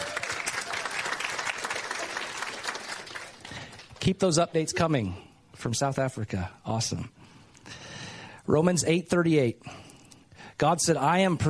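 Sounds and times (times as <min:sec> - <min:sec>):
church congregation applauding during a morning service: 0:00.0 - 0:04.5
speech: 0:04.0 - 0:07.2, 0:08.5 - 0:09.8, 0:10.6 - 0:11.4.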